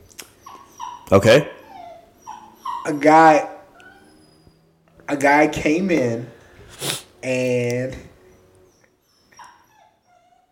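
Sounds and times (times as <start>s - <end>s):
dog whimpering: 0.2s - 4.8s, 8.2s - 10.5s
speech: 1.1s - 1.6s, 2.8s - 3.5s, 5.1s - 8.1s
quiet hiss: 5.1s - 9.1s.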